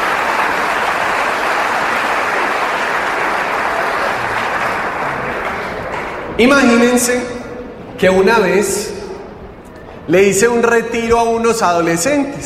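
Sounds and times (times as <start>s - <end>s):
audience applauding: 0.0s - 6.4s
speech: 6.4s - 7.4s, 8.0s - 9.0s, 10.1s - 12.4s.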